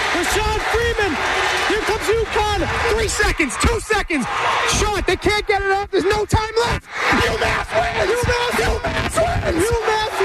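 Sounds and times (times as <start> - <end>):
basketball crowd cheering and yelling: 0.0 - 10.2
speech: 0.3 - 10.2.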